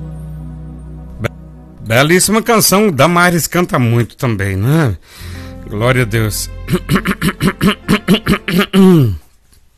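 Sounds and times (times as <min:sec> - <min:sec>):
speech: 0:01.9 - 0:09.2
person coughing: 0:06.8 - 0:09.3.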